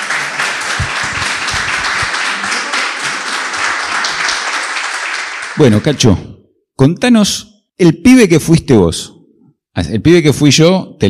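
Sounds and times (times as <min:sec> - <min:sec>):
audience applause: 0:00.0 - 0:06.0
speech: 0:05.6 - 0:09.1, 0:09.8 - 0:11.0.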